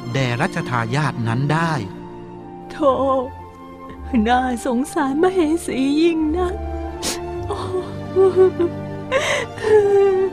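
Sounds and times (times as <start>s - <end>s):
speech: 0.1s - 2.0s, 2.7s - 3.4s, 4.1s - 7.1s, 7.7s - 10.3s
queen weeping and sobbing: 7.4s - 10.3s.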